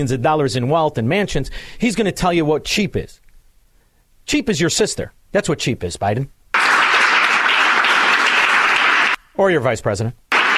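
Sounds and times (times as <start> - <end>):
speech: 0.0 - 3.2, 4.3 - 6.4, 9.4 - 10.2
crowd applauding: 6.5 - 9.2, 10.3 - 10.5.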